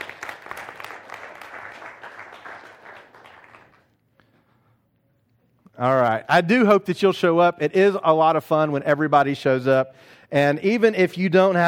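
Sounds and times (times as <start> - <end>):
audience round of applause: 0.0 - 3.9
speech: 5.8 - 11.6.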